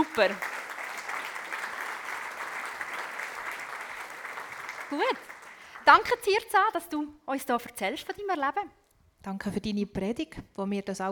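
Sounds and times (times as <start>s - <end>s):
audience applause: 0.0s - 6.2s
speech: 0.1s - 0.6s, 4.9s - 5.3s, 5.9s - 11.1s.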